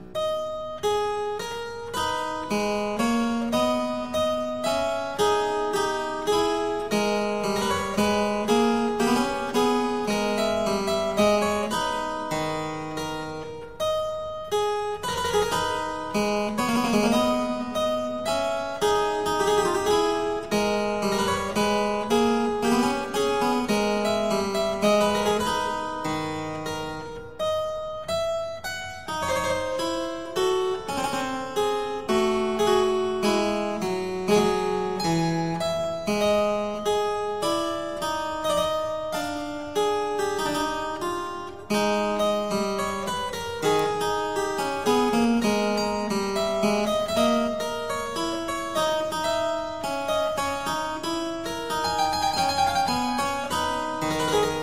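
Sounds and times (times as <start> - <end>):
minuet: 0.0 - 54.6.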